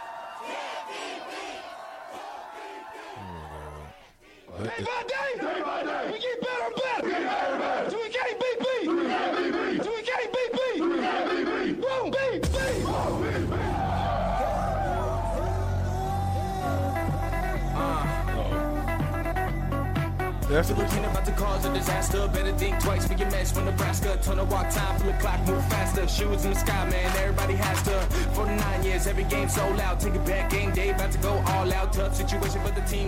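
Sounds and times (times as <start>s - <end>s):
shouted chant-like vocals: 0.0s - 19.1s, 20.6s - 33.0s
speech: 4.6s - 8.4s, 20.5s - 33.0s
game day pump-up anthem: 12.4s - 33.0s
heavy bass: 12.4s - 33.0s.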